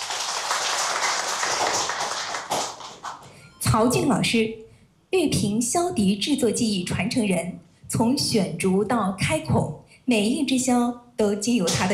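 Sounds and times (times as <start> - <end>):
audience applause: 0.0 - 3.2
speech: 3.7 - 11.9.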